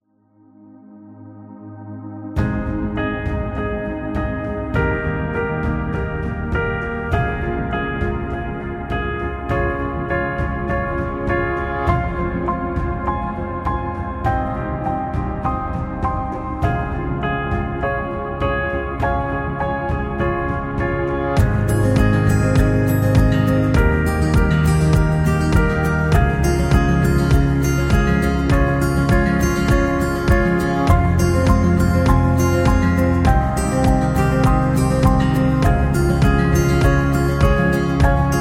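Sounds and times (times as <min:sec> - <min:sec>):
happy acoustic music: 0:02.4 - 0:38.3.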